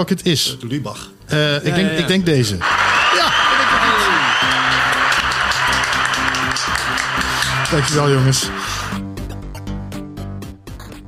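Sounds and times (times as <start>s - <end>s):
speech: 0.0s - 3.7s, 7.7s - 8.7s
recorded applause sound effect: 2.6s - 9.0s.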